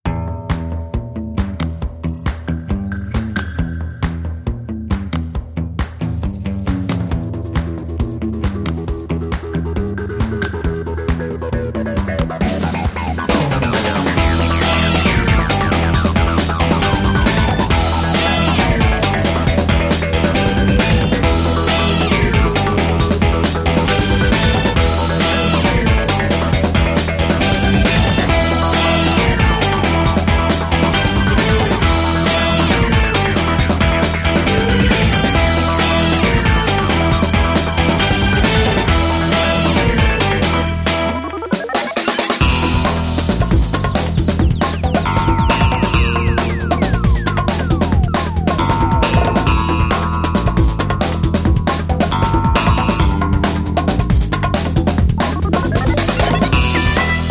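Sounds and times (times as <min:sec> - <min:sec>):
music: 0:00.0 - 0:57.2.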